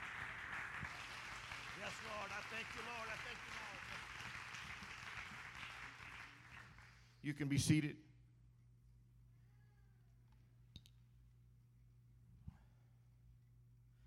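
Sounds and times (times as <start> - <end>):
crowd clapping in praise: 0.0 - 7.2
speech: 1.9 - 4.0, 7.2 - 8.1.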